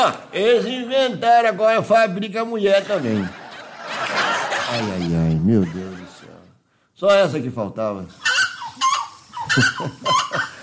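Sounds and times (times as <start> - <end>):
speech: 0.0 - 6.0, 7.0 - 8.9, 9.6 - 10.5
laughter: 2.6 - 6.5, 8.2 - 10.6
seriema bird calling: 8.2 - 10.6.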